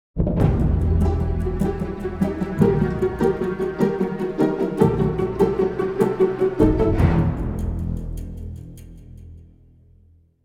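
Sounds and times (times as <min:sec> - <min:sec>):
string instrument: 0:00.2 - 0:09.6.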